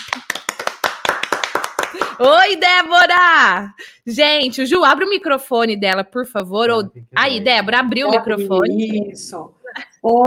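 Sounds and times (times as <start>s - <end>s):
people clapping for a guest: 0.0s - 2.8s
speech: 2.2s - 10.2s.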